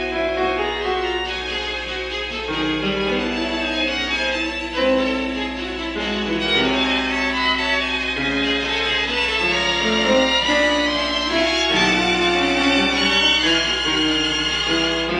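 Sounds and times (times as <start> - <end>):
piano and string quartet playing a quintet: 0.0 - 15.1.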